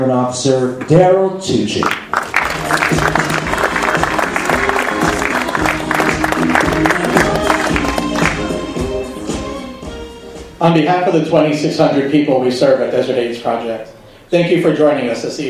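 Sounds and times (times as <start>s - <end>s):
speech: 0.0s - 3.3s, 10.6s - 15.4s
audience applause: 1.8s - 8.5s.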